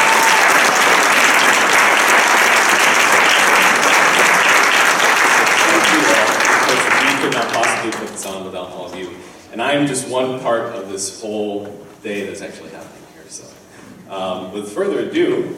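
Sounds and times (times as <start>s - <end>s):
audience applause: 0.0s - 8.4s
speech: 9.7s - 13.5s, 14.1s - 15.5s.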